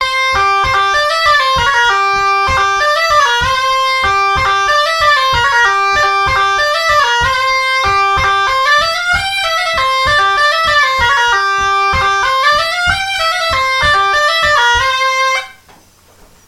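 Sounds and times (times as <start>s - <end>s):
Auvergne folk ballad: 0.0s - 15.7s.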